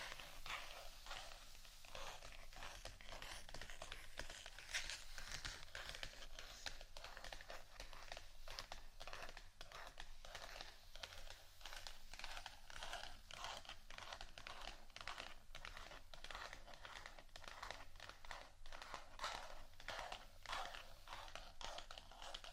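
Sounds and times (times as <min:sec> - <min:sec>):
dry scratching: 0:00.0 - 0:22.5.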